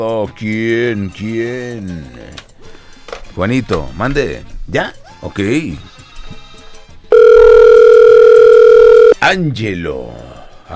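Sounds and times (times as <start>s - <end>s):
speech: 0.0s - 2.5s, 3.4s - 5.9s, 9.2s - 10.7s
telephone tone while a call is being placed: 7.1s - 9.2s.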